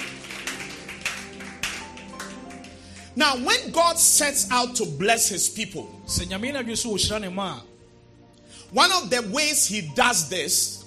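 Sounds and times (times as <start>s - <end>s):
audience clapping hands: 0.0s - 3.4s
speech: 3.2s - 7.7s, 8.7s - 10.8s.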